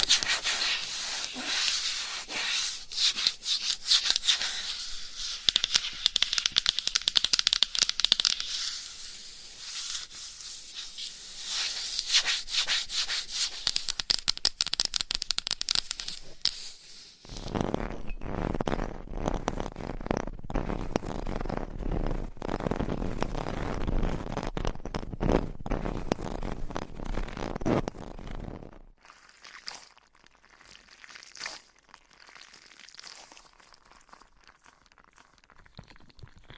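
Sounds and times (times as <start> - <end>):
scratching, tapping and rubbing with items and nails: 0.0 - 9.0, 9.7 - 16.7, 17.3 - 28.7.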